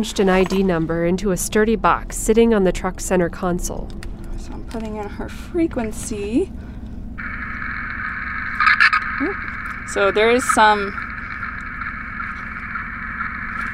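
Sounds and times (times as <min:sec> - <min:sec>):
speech: 0:00.0 - 0:04.1, 0:04.7 - 0:06.7, 0:09.2 - 0:11.0
radio telemetry receiver static hiss: 0:07.2 - 0:13.7.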